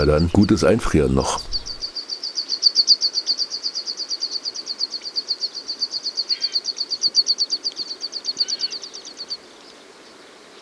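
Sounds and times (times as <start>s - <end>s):
speech: 0.0s - 1.5s
snow finch call: 1.4s - 9.8s.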